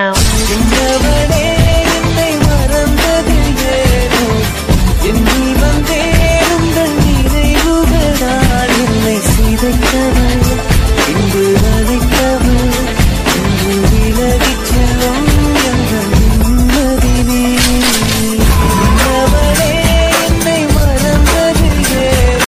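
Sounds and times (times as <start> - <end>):
trap background music: 0.1 - 22.4.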